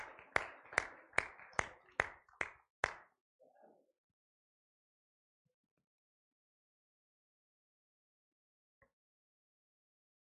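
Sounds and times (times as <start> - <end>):
audience hand clapping: 0.0 - 3.1.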